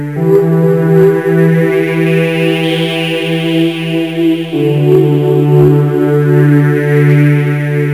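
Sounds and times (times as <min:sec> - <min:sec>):
quiz music loop: 0:00.1 - 0:07.9.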